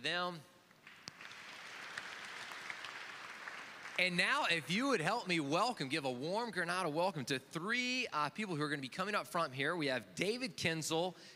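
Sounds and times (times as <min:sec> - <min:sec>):
speech: 0:00.0 - 0:00.5, 0:04.0 - 0:11.3
audience applauding: 0:00.8 - 0:04.6.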